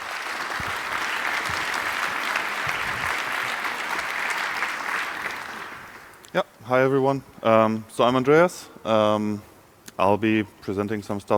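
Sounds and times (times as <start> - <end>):
audience applause: 0.0 - 6.2
speech: 6.3 - 11.3.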